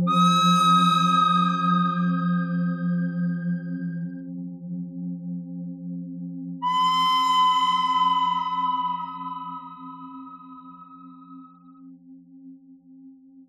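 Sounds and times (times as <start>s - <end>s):
pentatonic bird melody: 0.1s - 3.6s, 6.7s - 11.5s.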